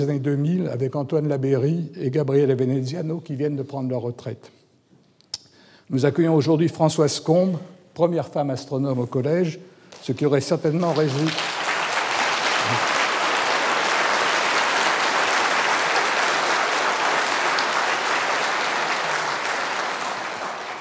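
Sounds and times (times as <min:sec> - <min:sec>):
speech: 0:00.0 - 0:04.6, 0:05.9 - 0:11.5
audience applause: 0:10.7 - 0:20.8.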